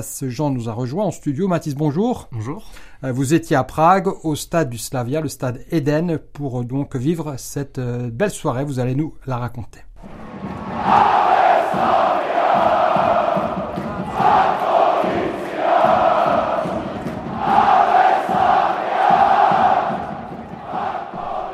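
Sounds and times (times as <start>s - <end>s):
speech: 0.0s - 10.2s
football supporters chanting in stadium: 10.1s - 21.5s.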